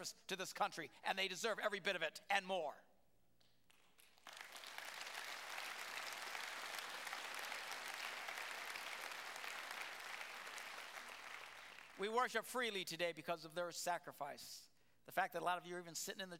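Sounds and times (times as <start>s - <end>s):
speech: 0.0s - 2.9s, 12.0s - 16.3s
audience applause: 4.0s - 12.0s.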